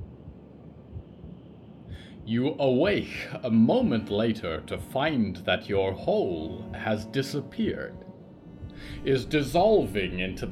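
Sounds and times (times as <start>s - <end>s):
slow heartbeat: 0.0s - 3.2s, 8.5s - 9.1s
low hum: 0.0s - 10.5s
speech: 2.2s - 8.1s, 8.8s - 10.5s.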